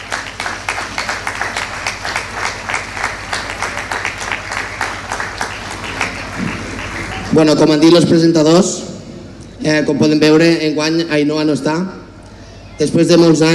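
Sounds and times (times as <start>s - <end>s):
audience applause: 0.0s - 7.8s
speech: 7.3s - 8.9s, 9.6s - 12.0s, 12.8s - 13.5s.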